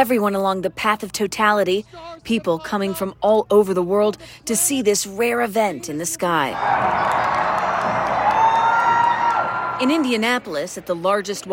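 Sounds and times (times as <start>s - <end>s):
speech: 0.0s - 8.0s, 9.8s - 11.5s
crowd cheering a total solar eclipse at the Indianapolis Motor Speedway: 6.5s - 11.0s.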